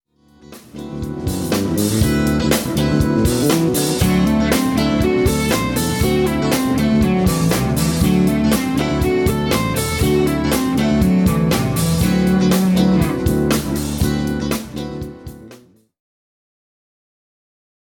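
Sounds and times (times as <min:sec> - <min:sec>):
guitar playing: 0:00.2 - 0:15.8.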